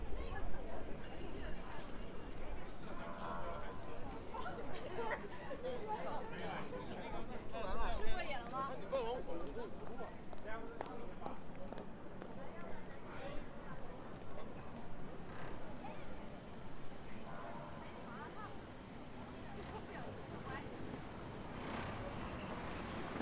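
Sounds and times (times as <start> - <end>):
crowd murmur on Zhongjie street in Shenyang: 0.0 - 23.2
passing traffic: 14.0 - 23.2.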